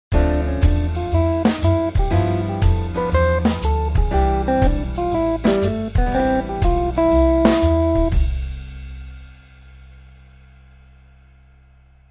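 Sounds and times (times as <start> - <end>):
musical scale: 0.2 - 8.1.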